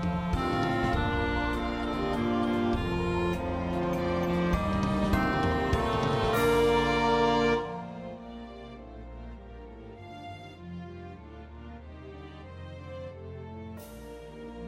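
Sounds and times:
clarinet melody: 0.2s - 8.8s.

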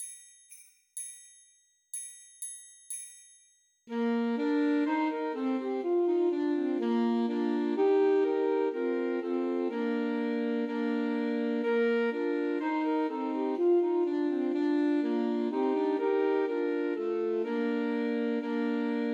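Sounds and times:
Christmas carol played by three alto saxophones: 3.9s - 19.1s.

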